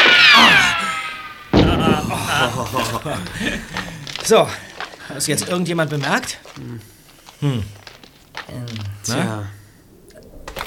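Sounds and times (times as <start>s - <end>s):
high wavering descending whistle: 0.0s - 2.5s
flare pistol being fired: 0.0s - 4.2s
laughter: 0.4s - 5.7s
speech: 3.0s - 7.8s, 8.5s - 9.6s.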